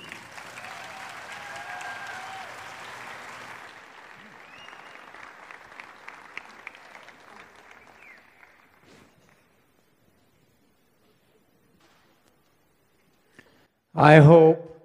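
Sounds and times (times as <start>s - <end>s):
audience applause: 0.0s - 9.7s.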